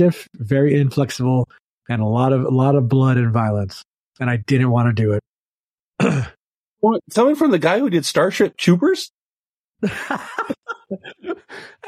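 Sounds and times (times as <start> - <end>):
speech: 0.0 - 5.3, 6.0 - 9.2, 9.8 - 11.8
cough imitating an old man: 6.0 - 6.4
laughter: 9.8 - 11.8.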